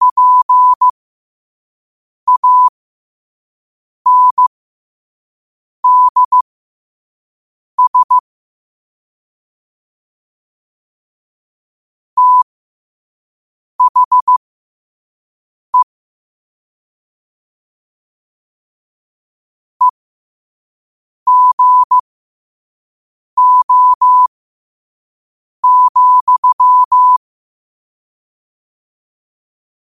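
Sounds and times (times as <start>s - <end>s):
morse code at 5 wpm: 0.0s - 0.9s, 2.3s - 2.7s, 4.1s - 4.5s, 5.8s - 6.4s, 7.8s - 8.2s, 12.2s - 12.4s, 13.8s - 14.4s, 21.3s - 22.0s, 23.4s - 24.3s, 25.6s - 27.2s.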